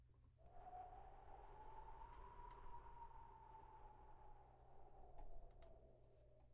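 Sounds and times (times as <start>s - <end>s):
howling wind: 0.3s - 6.5s.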